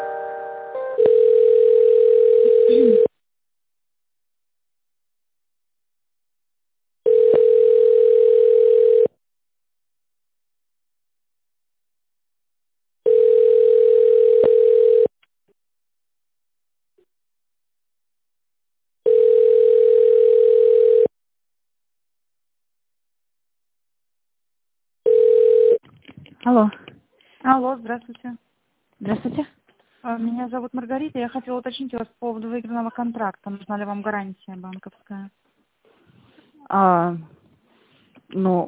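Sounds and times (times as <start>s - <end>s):
telephone ringing tone during a call transfer: 0.7s - 3.1s, 7.0s - 9.1s, 13.0s - 15.1s, 19.0s - 21.1s, 25.0s - 25.8s
speech: 27.8s - 28.5s, 30.1s - 35.5s, 36.7s - 37.3s, 38.3s - 38.6s.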